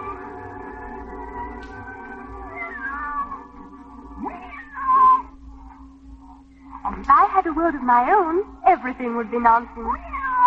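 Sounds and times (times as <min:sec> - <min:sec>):
soft music: 0:00.0 - 0:10.4
cat meowing: 0:02.4 - 0:03.4, 0:04.2 - 0:05.3, 0:09.9 - 0:10.4
speech: 0:07.0 - 0:10.1.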